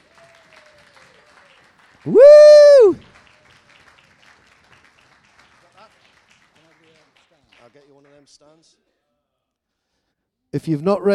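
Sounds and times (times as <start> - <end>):
audience clapping: 0.0 - 8.6
speech: 2.0 - 3.1, 7.9 - 8.9, 10.5 - 11.1.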